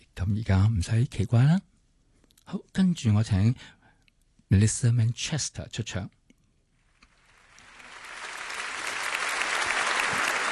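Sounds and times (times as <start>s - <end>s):
speech: 0.2s - 1.7s, 2.5s - 3.8s, 4.5s - 6.2s
audience applause: 7.4s - 10.4s.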